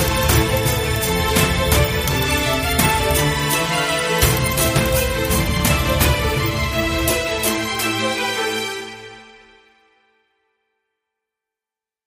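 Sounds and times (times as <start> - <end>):
big win jingle: 0.0 - 8.4.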